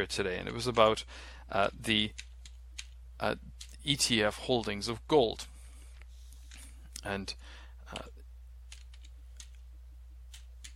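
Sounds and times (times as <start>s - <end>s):
speech: 0.0s - 2.3s, 3.2s - 5.5s, 7.0s - 8.2s
typing on a computer keyboard: 2.0s - 3.9s, 8.7s - 9.6s, 10.3s - 10.7s.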